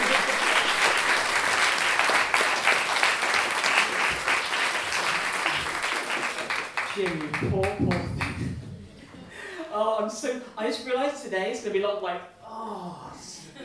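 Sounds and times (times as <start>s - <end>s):
audience applause: 0.0s - 8.7s
speech: 7.0s - 8.7s, 9.8s - 12.8s.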